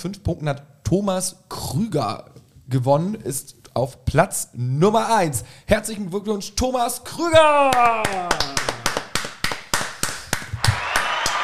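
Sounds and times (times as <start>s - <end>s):
speech: 0.0s - 8.5s
applause: 7.7s - 11.4s.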